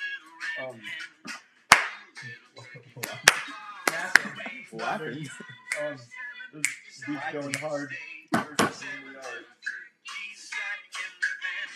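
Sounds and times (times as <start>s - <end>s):
rhythmic rapping voice: 0.0s - 11.7s
speech: 0.6s - 1.4s, 4.8s - 9.6s
hand clapping: 1.3s - 2.1s, 3.0s - 4.5s, 7.4s - 7.8s, 8.4s - 8.9s
laughter: 2.2s - 6.0s.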